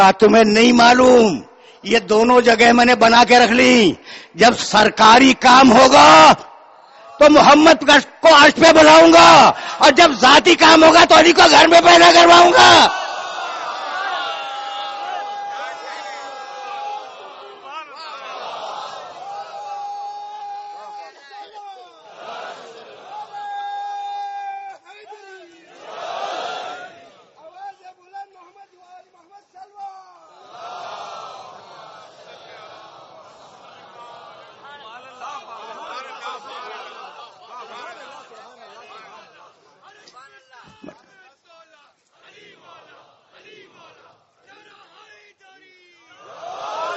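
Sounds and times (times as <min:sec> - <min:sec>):
speech: 0:00.0 - 0:06.5, 0:07.2 - 0:13.0
crowd at a religious gathering chanting slogans: 0:12.4 - 0:19.8, 0:21.9 - 0:23.4, 0:25.4 - 0:27.4, 0:30.3 - 0:39.9, 0:42.1 - 0:45.2, 0:46.0 - 0:46.9.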